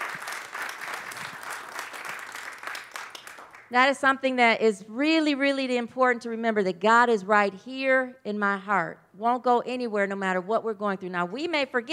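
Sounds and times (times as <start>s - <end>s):
audience clapping: 0.0s - 3.7s
speech: 3.7s - 11.9s.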